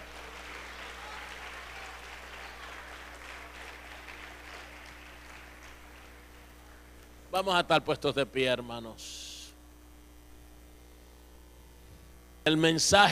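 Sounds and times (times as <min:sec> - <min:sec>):
church congregation clapping during a Good Friday sermon: 0:00.0 - 0:06.8
constant low hum: 0:03.9 - 0:13.1
speech: 0:07.4 - 0:09.2, 0:12.5 - 0:13.1.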